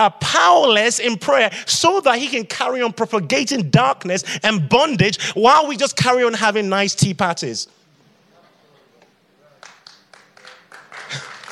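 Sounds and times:
speech: 0.0 - 7.8
audience clapping: 9.5 - 11.5.

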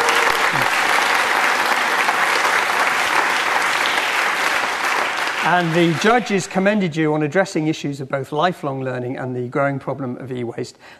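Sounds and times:
crowd applause: 0.0 - 6.9
speech: 5.5 - 10.9.

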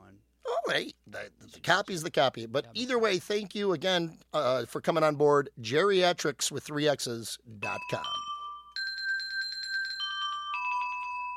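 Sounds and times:
speech: 0.7 - 8.2
bells ringing: 7.6 - 11.3.

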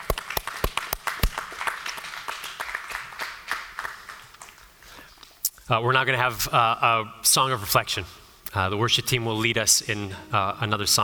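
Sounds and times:
audience clapping: 0.0 - 5.3
speech: 5.7 - 11.0.

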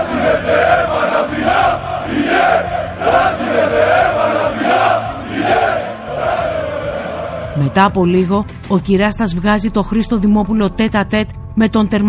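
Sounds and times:
football fans of Trifylia cheering after a goal: 0.0 - 7.7
speech: 7.7 - 12.0.

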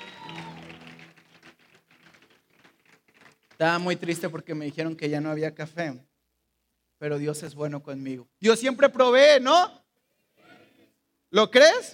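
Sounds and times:
person cheering: 0.0 - 1.0
crowd applauding: 0.0 - 4.4
speech: 3.6 - 6.1, 7.0 - 9.8, 11.3 - 11.9.

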